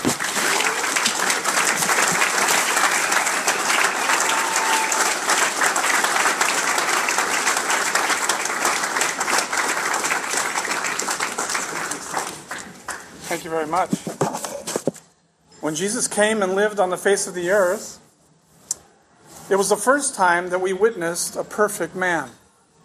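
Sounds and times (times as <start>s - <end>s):
audience applause welcoming a distinguished speaker: 0.0s - 13.2s
speech: 13.4s - 14.1s, 15.6s - 18.0s, 19.5s - 22.4s.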